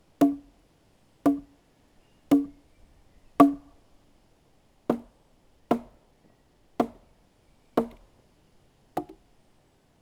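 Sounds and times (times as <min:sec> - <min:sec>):
club hitting logs as wooden percussion: 0:00.2 - 0:00.6, 0:01.3 - 0:01.6, 0:02.3 - 0:02.7, 0:03.4 - 0:03.8, 0:04.9 - 0:06.0, 0:06.8 - 0:07.2, 0:07.8 - 0:08.2, 0:09.0 - 0:09.2.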